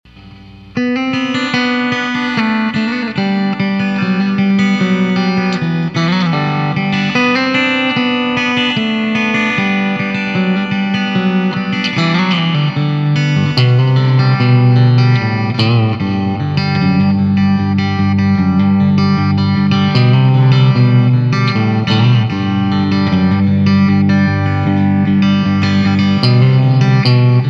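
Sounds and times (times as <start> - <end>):
clean jangly guitar: 0.1 - 27.4.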